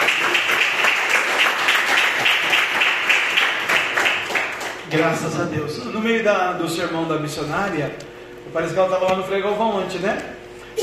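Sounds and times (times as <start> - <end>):
audience applause: 0.0 - 4.9
speech: 4.9 - 10.3.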